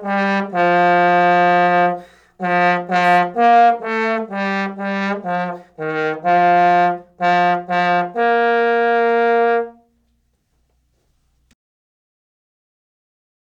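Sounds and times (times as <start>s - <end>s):
trombone playing a march: 0.0s - 10.0s.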